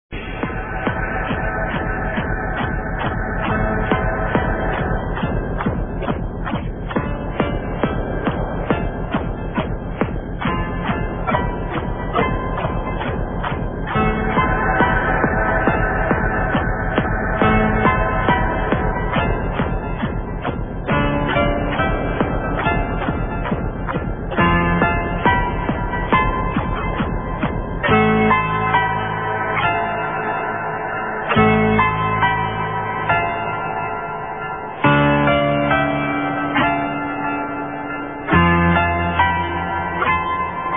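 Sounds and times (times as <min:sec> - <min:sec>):
piano: 0:00.1 - 0:40.7.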